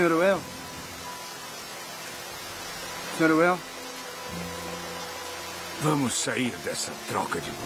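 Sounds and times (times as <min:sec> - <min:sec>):
speech: 0:00.0 - 0:00.6, 0:03.2 - 0:03.7, 0:04.3 - 0:04.6, 0:05.8 - 0:07.6
rain falling: 0:00.0 - 0:07.6.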